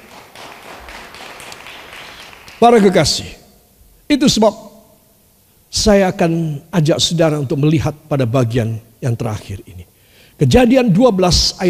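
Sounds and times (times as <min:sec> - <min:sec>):
audience applause: 0:00.0 - 0:03.2
speech: 0:02.6 - 0:03.4, 0:04.1 - 0:04.6, 0:05.8 - 0:11.6.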